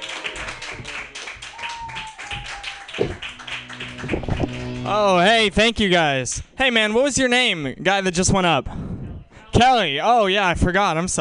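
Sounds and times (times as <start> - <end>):
audience clapping for a comedian at a comedy club: 0.0 - 5.3
speech: 4.9 - 8.8, 9.6 - 11.1.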